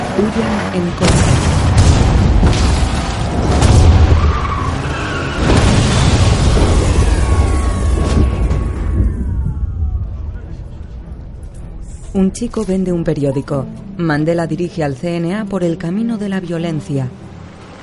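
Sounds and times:
speech: 0:00.2 - 0:01.5, 0:12.1 - 0:17.2
explosive detonating: 0:01.0 - 0:11.8.

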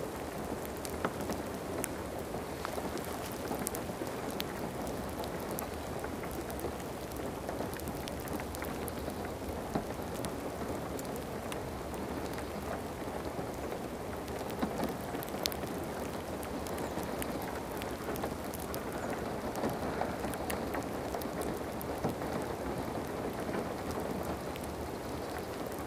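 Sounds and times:
gentle rain: 0:00.0 - 0:25.8.

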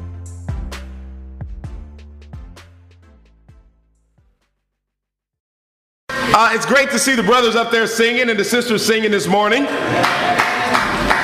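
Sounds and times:
speech: 0:06.3 - 0:10.6
audience clapping: 0:09.8 - 0:11.2.

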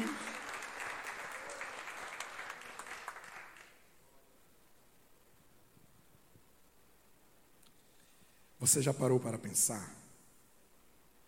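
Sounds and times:
audience applause: 0:00.0 - 0:03.8
speech: 0:08.6 - 0:10.1.

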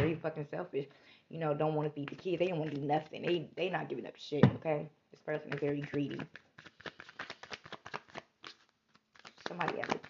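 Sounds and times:
speech: 0:00.2 - 0:07.0, 0:09.5 - 0:10.0
playing cards being pulled from a deck: 0:05.5 - 0:10.0.

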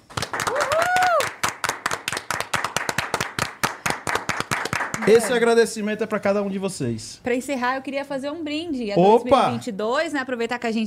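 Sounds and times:
round of applause: 0:00.0 - 0:05.5
speech: 0:05.1 - 0:10.8.

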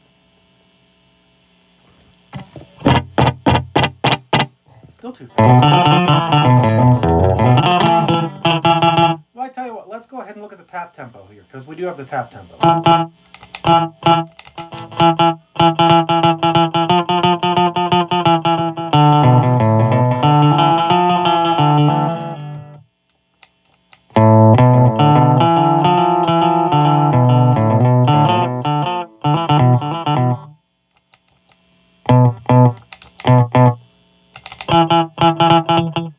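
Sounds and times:
electric guitar notes and chords through slapback delay: 0:02.4 - 0:04.5, 0:05.4 - 0:09.2, 0:12.6 - 0:22.8, 0:24.2 - 0:30.6, 0:32.1 - 0:33.8, 0:34.7 - 0:36.1
speech: 0:05.0 - 0:07.6, 0:10.7 - 0:14.3
percussive clicks: 0:13.2 - 0:15.0, 0:32.7 - 0:33.4, 0:34.3 - 0:34.9.

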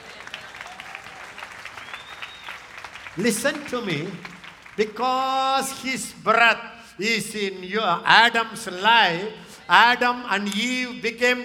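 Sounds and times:
audience clapping: 0:00.0 - 0:05.8
speech: 0:03.2 - 0:11.4.

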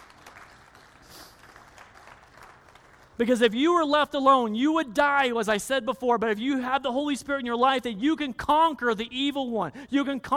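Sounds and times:
applause: 0:00.0 - 0:03.5
speech: 0:03.2 - 0:10.3.

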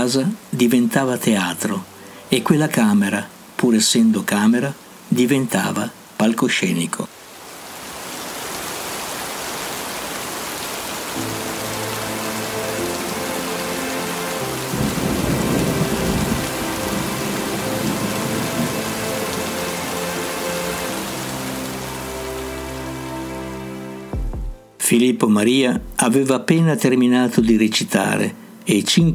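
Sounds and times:
speech: 0:00.0 - 0:07.2, 0:24.9 - 0:29.1
heavy rain: 0:00.0 - 0:24.2
rolling thunder: 0:14.7 - 0:19.0.

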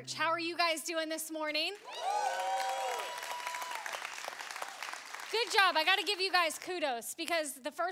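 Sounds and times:
speech: 0:00.0 - 0:02.4, 0:05.3 - 0:07.8
audience clapping: 0:01.6 - 0:07.4
audience cheering: 0:01.8 - 0:06.5.

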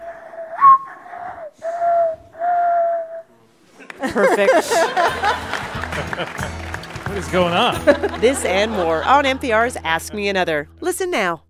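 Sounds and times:
person whistling a bird call imitation: 0:00.6 - 0:03.3
laughter: 0:03.7 - 0:09.8
speech: 0:04.1 - 0:11.4.

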